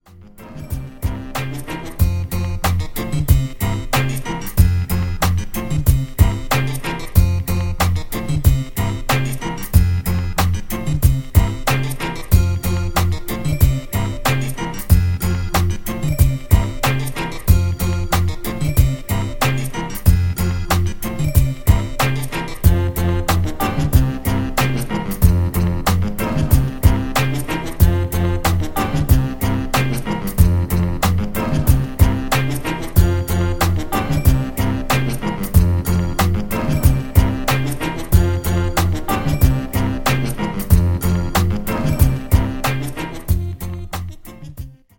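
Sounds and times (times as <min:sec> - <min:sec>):
instrumental dub music: 0:00.0 - 0:44.9.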